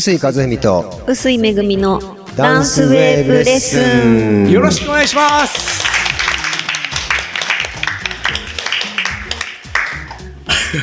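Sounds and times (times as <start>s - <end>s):
speech: 0.0s - 5.9s
music with bass line: 0.9s - 10.8s
loud hand clapping: 4.6s - 10.4s.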